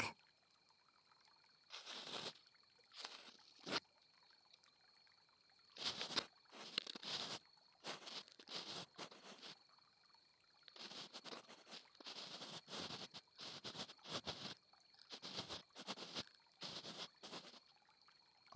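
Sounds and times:
ear cleaning on a lap pillow: 1.7s - 2.4s, 3.0s - 3.8s, 5.8s - 9.5s, 10.7s - 17.6s.

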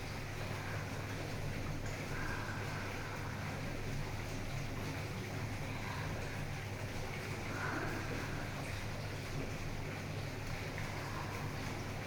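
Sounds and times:
jacuzzi jet bath bubbling: 0.0s - 12.0s.

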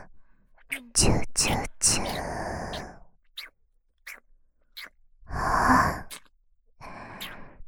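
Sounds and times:
drooling oral sex sounds: 0.7s - 3.5s, 4.0s - 6.3s.

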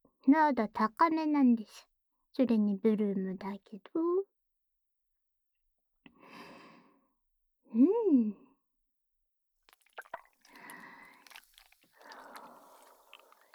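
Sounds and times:
speech: 0.2s - 4.2s, 7.7s - 8.4s
blue slime squishing: 9.7s - 13.5s.

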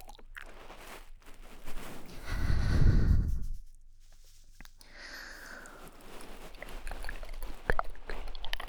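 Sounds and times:
bead cushion rustling ASMR: 0.4s - 3.8s, 5.3s - 8.5s.

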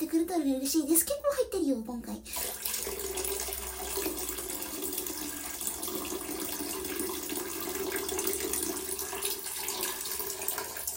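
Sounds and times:
speech: 0.3s - 2.6s
urine poured from bottle into water: 2.3s - 10.9s.

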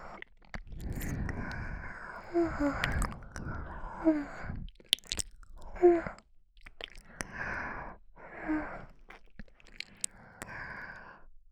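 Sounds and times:
ASMR lips wrapping and licking ears: 0.1s - 3.9s, 4.6s - 7.3s, 8.8s - 10.5s.

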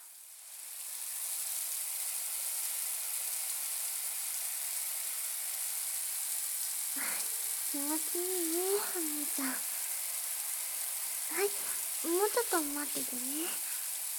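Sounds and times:
shower water spraying: 0.0s - 14.1s
speech: 7.7s - 9.7s, 11.4s - 13.7s.

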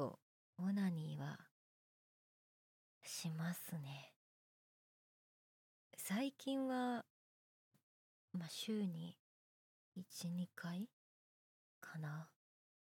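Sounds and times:
boyish new female voice actress performing: 0.0s - 1.5s, 3.1s - 4.1s, 6.0s - 7.1s, 8.4s - 9.2s, 10.0s - 10.9s.

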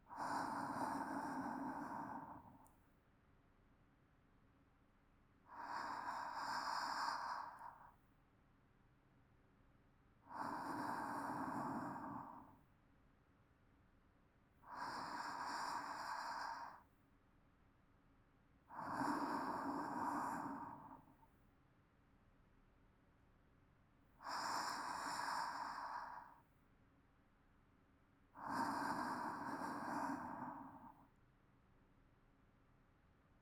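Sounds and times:
calm sleep breathing: 0.0s - 2.8s, 5.4s - 8.0s, 10.2s - 12.7s, 14.6s - 17.0s, 18.6s - 21.4s, 24.2s - 26.6s, 28.3s - 31.2s.

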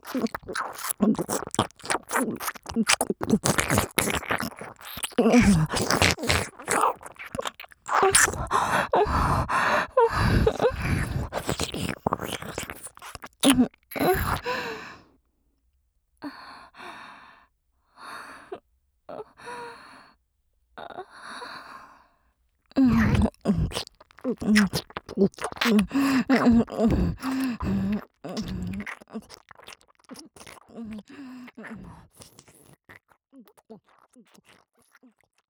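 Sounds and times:
ASMR ear licking alternating left and right: 0.0s - 14.7s, 22.8s - 30.6s.

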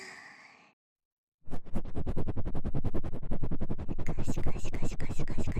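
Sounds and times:
cotton swab and ear pick in right ear: 1.6s - 5.5s.

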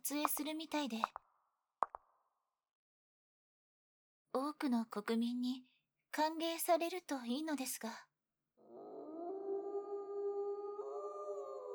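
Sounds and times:
speech: 0.0s - 1.2s, 4.4s - 8.1s
wolf howling outside at night: 8.6s - 11.7s.

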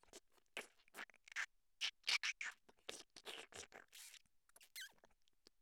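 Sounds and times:
kissing in an abandoned house: 0.6s - 4.9s.

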